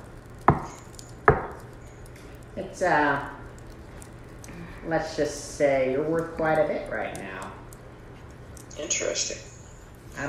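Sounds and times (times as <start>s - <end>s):
knocking underneath a counter: 0.5s - 1.6s
speech: 2.6s - 3.4s, 4.8s - 7.6s, 8.8s - 9.5s.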